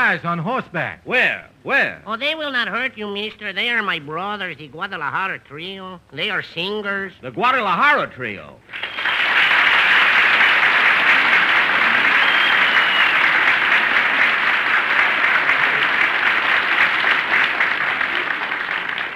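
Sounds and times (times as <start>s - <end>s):
speech: 0.1s - 9.1s
sustained applause from a group: 8.6s - 19.1s.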